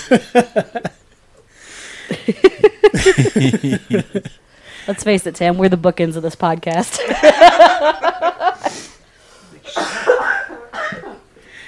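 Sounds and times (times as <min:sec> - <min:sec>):
speech: 0:00.1 - 0:00.9, 0:02.3 - 0:08.7
laughter: 0:02.1 - 0:04.4, 0:07.0 - 0:08.8
person coughing: 0:09.6 - 0:11.2.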